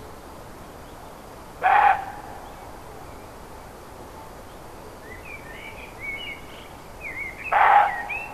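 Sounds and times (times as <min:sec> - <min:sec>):
roe deer barking: 0:01.6 - 0:02.4, 0:07.5 - 0:08.2.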